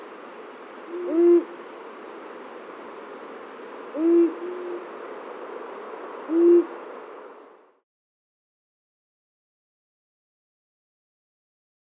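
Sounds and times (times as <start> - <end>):
Long-eared owl giving low short hoots: 0.8 - 1.6, 3.8 - 4.9, 6.2 - 6.8.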